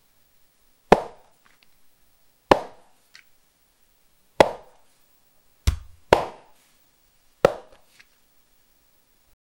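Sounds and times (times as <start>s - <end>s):
boxing punches hitting opponents: 2.5s - 2.9s, 4.4s - 4.8s, 5.7s - 6.5s, 7.5s - 7.8s.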